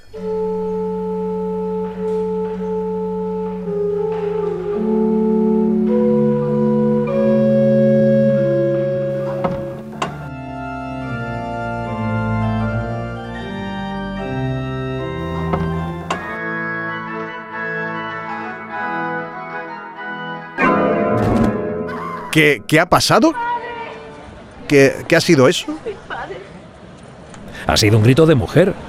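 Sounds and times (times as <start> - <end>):
church pipe organ playing sustained chords: 0.0 - 22.7
speech: 0.1 - 0.4, 22.4 - 23.5, 24.7 - 25.9, 27.7 - 28.8.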